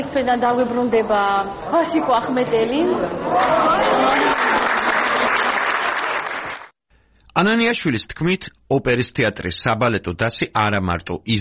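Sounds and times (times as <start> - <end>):
speech: 0.1 - 4.5, 7.4 - 11.3
opera theatre hall audience clapping in an ovation: 3.3 - 6.8.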